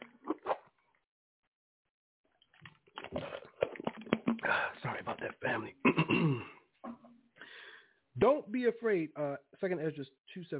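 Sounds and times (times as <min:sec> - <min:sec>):
person drinking water: 0:00.0 - 0:00.7, 0:02.5 - 0:06.6
speech: 0:08.2 - 0:10.5.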